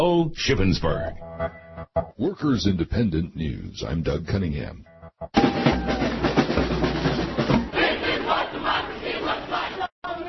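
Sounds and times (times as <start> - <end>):
speech: 0.0 - 5.7
large crowd of protesters shouting at capitol: 5.4 - 6.4, 7.3 - 10.2
protesters chanting: 7.3 - 10.2.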